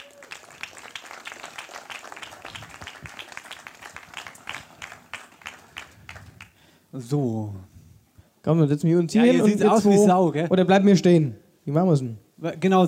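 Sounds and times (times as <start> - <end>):
audience applause: 0.0 - 6.6
speech: 6.9 - 7.7, 8.4 - 12.8.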